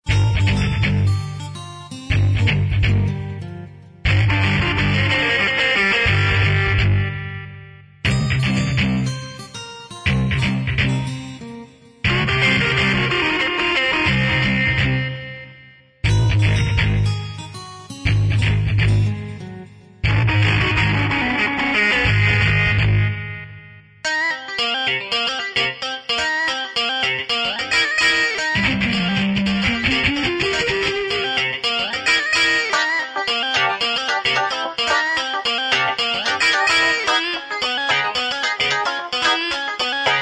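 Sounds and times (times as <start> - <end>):
groove music clips: 0.0 - 40.2.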